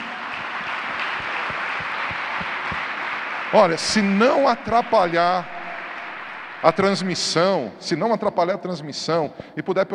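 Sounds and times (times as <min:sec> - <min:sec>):
audience applause: 0:00.0 - 0:07.6
speech: 0:03.5 - 0:05.5, 0:06.6 - 0:09.9.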